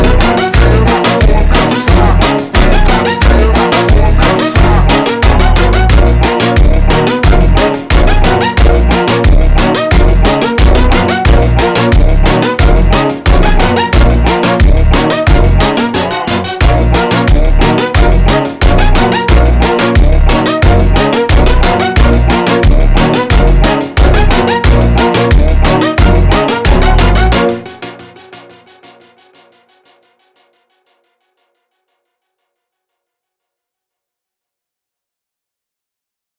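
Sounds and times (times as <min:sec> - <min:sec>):
slowed montagem funk music: 0:00.0 - 0:28.3.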